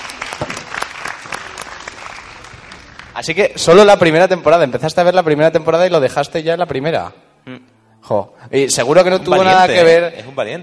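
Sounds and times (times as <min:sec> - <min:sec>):
audience applause: 0:00.0 - 0:03.4
speech: 0:03.2 - 0:10.6.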